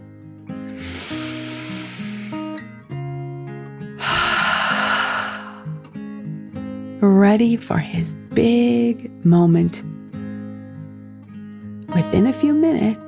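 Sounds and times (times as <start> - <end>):
deep breath in and out: 0.7 - 2.6, 4.0 - 5.8
speech: 7.1 - 10.0, 12.1 - 13.0.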